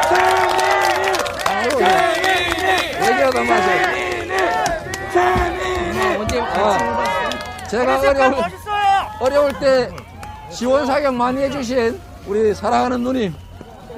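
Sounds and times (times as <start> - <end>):
audience applause and cheering: 0.0 - 11.0
speech: 7.7 - 8.6, 9.2 - 13.4.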